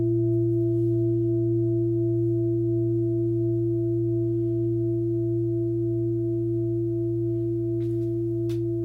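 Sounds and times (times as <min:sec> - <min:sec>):
therapeutic singing bowl ringing in C sharp: 0:00.0 - 0:08.8.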